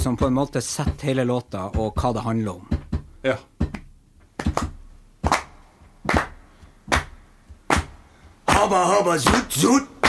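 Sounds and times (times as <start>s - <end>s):
speech: 0.0s - 3.6s, 8.6s - 10.0s
hand clapping: 3.6s - 10.0s.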